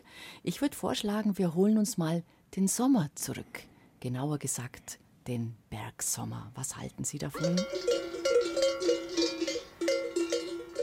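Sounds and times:
speech: 0.4s - 8.1s
cowbells clanking on grazing cows: 7.4s - 10.8s.

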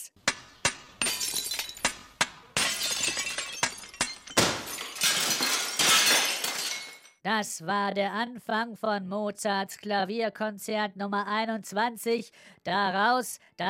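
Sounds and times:
hammer striking water-filled drinking glasses: 0.2s - 2.8s
glass shattering: 0.6s - 7.2s
speech: 7.3s - 13.6s.

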